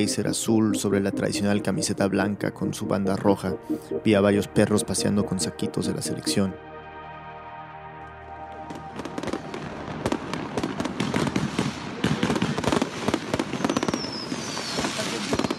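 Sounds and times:
speech: 0.0s - 6.7s
fireworks going off: 8.9s - 15.5s.

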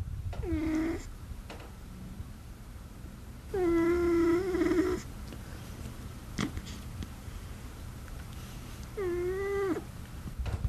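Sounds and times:
low hum: 0.0s - 10.6s
cat snoring: 0.4s - 1.1s, 3.5s - 5.1s, 9.0s - 9.9s.

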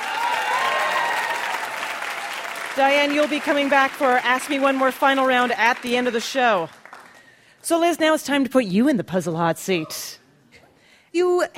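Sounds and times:
audience applause: 0.0s - 7.2s
speech: 2.8s - 6.8s, 7.6s - 10.2s, 11.1s - 11.5s.

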